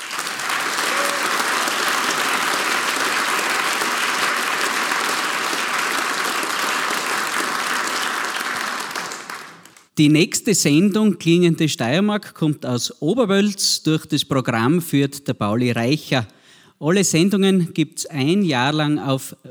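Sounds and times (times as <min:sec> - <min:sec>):
audience applause: 0:00.0 - 0:09.9
speech: 0:10.0 - 0:19.4.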